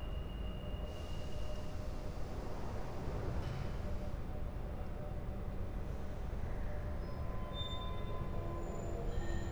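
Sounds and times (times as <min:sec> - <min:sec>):
Central Line railway ambience: 0:00.2 - 0:09.5.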